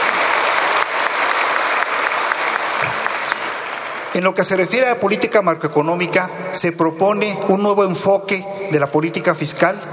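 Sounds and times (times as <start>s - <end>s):
auditorium audience applause: 0.0s - 4.6s
speech: 4.2s - 9.9s.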